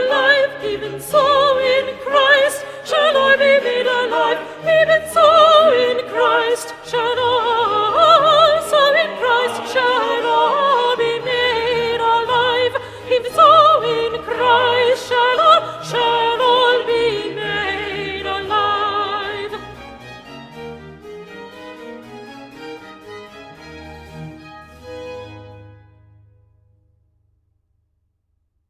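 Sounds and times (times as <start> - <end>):
sopranos singing: 0.0 - 21.4.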